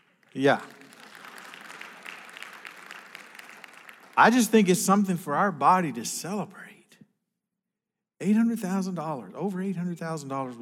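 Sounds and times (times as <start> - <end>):
audience applause: 0.0 - 5.1
speech: 0.4 - 0.8, 4.2 - 6.7, 8.2 - 10.5.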